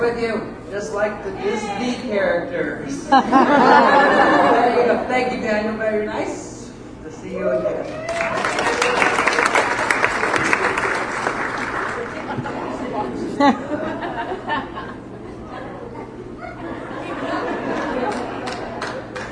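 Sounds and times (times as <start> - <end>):
speech: 0.0 - 6.5, 7.2 - 8.5, 13.4 - 13.7
audience laughter: 3.1 - 5.0, 9.6 - 19.3
audience applause: 8.0 - 12.7, 17.7 - 19.3.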